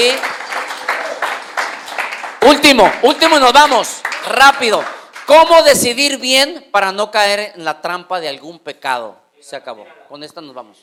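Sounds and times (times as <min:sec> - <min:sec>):
speech: 0:00.0 - 0:00.3, 0:02.4 - 0:10.8
crowd applauding: 0:00.0 - 0:05.6.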